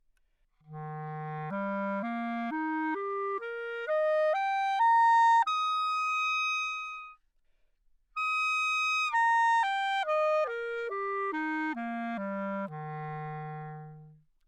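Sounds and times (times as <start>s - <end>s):
romantic B-flat clarinet arpeggio: 0.7s - 7.2s, 8.2s - 14.2s.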